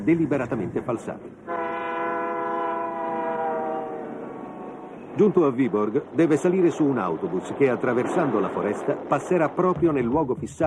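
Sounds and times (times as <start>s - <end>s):
speech: 0.0s - 1.6s, 5.2s - 10.6s
departing train horn blaring: 1.4s - 5.2s.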